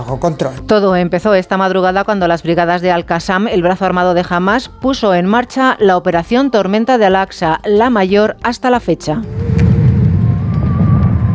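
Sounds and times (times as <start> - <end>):
speech: 0.0 - 9.7
rockets launching: 9.3 - 11.3.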